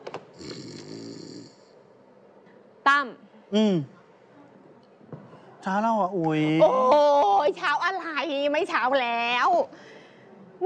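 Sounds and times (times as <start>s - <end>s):
person snoring asleep on a sofa: 0.4s - 1.7s
speech: 3.0s - 4.0s, 5.6s - 9.9s.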